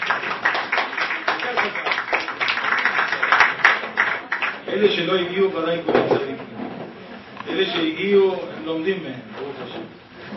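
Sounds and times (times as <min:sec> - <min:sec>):
crowd applause: 0:00.0 - 0:04.9
murmur of voices: 0:00.9 - 0:10.3
speech: 0:04.7 - 0:06.5, 0:07.5 - 0:10.3.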